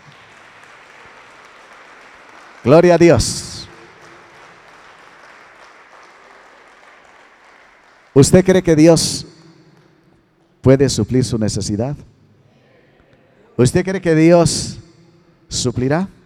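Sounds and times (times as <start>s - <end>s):
crowd applauding: 0.0s - 9.1s
speech: 2.6s - 3.5s, 8.2s - 9.3s, 10.6s - 12.2s, 13.6s - 14.8s, 15.5s - 16.2s.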